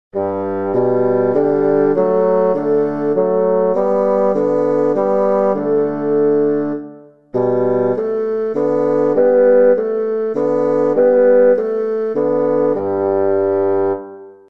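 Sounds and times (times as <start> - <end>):
fagottino: 0.1 - 14.4.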